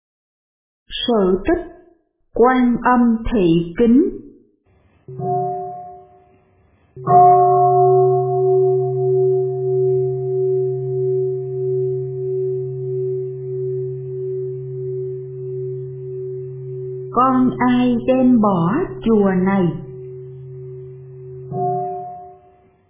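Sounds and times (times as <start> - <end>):
speech: 1.0 - 1.7, 2.4 - 4.3, 5.1 - 5.6, 7.0 - 7.4, 17.4 - 19.8
great temple bell at a pagoda struck during the evening service: 5.1 - 6.2, 7.0 - 22.5.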